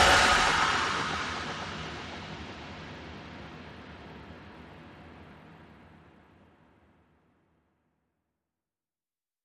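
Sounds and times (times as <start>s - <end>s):
guitar without feedback: 0.0s - 2.6s.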